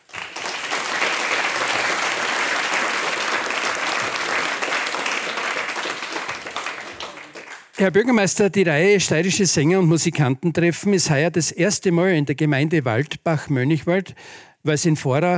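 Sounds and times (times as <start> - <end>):
audience applause for the mayor: 0.0 - 7.8
speech: 7.8 - 15.3.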